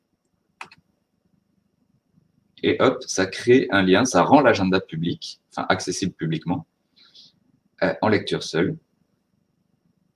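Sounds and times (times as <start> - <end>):
faint low hum: 0.0 - 10.1
computer mouse click on the Nextcloud calendar plus button: 0.2 - 0.9
speech: 2.6 - 6.7, 7.8 - 8.8.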